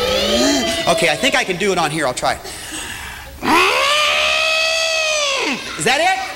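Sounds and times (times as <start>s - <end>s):
voice imitating an elephant trumpeting: 0.0s - 1.4s, 3.4s - 5.6s
speech: 0.9s - 2.6s, 5.8s - 6.2s.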